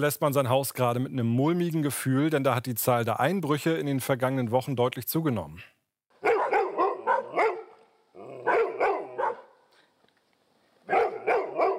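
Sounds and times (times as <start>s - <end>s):
speech: 0.0s - 5.8s
dogs barking: 6.2s - 9.7s, 10.9s - 11.7s.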